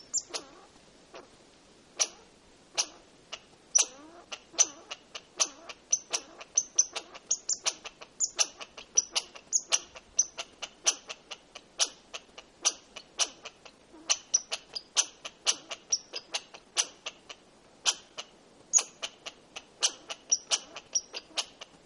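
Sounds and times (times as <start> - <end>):
American red squirrel nasal chitter: 0.0 - 0.6, 3.8 - 18.1, 18.7 - 21.8.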